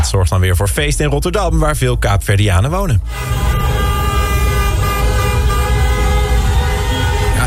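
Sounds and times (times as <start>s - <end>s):
speech: 0.1s - 3.5s
car horns honking in a busy street: 3.0s - 7.4s
traffic rumble: 3.1s - 7.4s.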